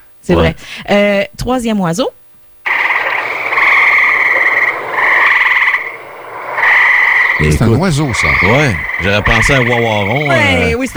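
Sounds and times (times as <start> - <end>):
speech: 0.2 - 2.2, 7.4 - 10.9
gray tree frog call: 2.6 - 10.9.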